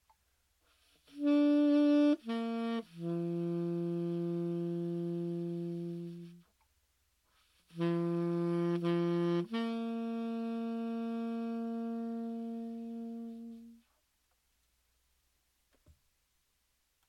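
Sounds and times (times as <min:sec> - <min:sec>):
saxophone playing a bugle call: 0:01.0 - 0:06.5, 0:07.6 - 0:13.9.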